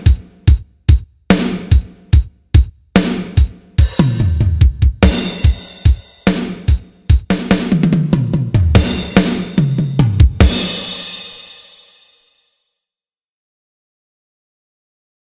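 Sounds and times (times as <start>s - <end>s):
drum part: 0.0s - 11.8s.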